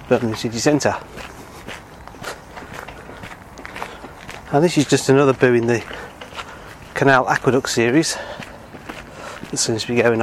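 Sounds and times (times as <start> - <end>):
footsteps along the towpath of the Worcester and Birmingham Canal: 0.0 - 10.2
speech: 0.1 - 1.4, 4.5 - 6.0, 7.0 - 8.4, 9.5 - 10.2.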